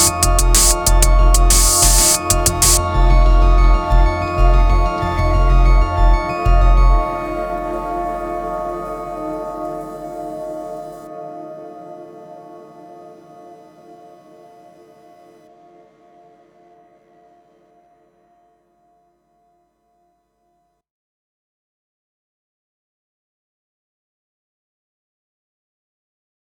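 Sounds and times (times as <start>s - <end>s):
wildly overdriven electronics rhythmic industrial noise: 0.0s - 11.0s.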